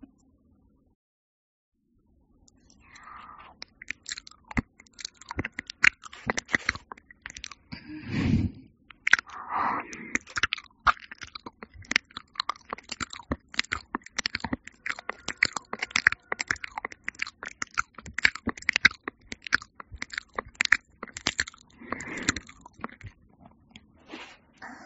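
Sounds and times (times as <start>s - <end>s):
wet ASMR ear-licking mouth sounds: 2.9s - 7.7s, 8.9s - 23.2s.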